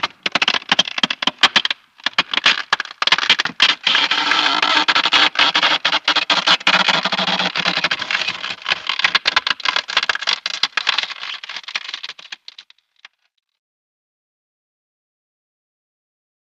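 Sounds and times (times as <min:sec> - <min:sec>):
ice cracking: 0:00.0 - 0:13.2
ice rubbing: 0:02.2 - 0:12.1.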